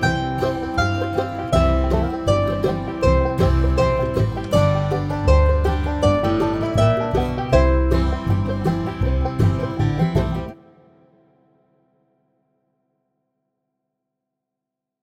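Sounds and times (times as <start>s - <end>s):
slow mandolin playing: 0.0s - 11.3s.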